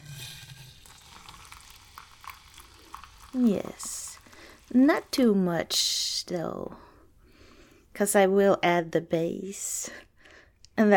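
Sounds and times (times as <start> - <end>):
water poured into hot sizzling pot: 0.0 - 6.4
speech: 3.3 - 4.0, 4.7 - 6.8, 8.0 - 10.1, 10.8 - 10.9.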